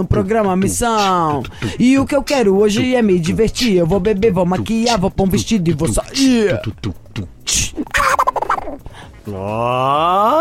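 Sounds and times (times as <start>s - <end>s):
person imitating a cartoon duck coughing and chattering: 0.0s - 2.1s, 4.8s - 8.8s
speech: 0.0s - 7.9s, 9.3s - 10.3s.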